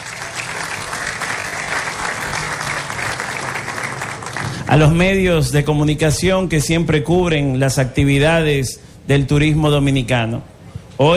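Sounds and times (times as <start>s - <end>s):
crowd applauding: 0.0s - 5.1s
speech: 4.7s - 11.1s.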